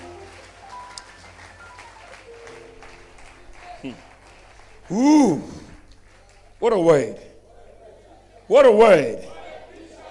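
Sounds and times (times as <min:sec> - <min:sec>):
people clapping for the Lord: 0:00.0 - 0:07.2
speech: 0:03.8 - 0:04.1, 0:04.9 - 0:05.6, 0:06.6 - 0:07.3, 0:08.5 - 0:09.3.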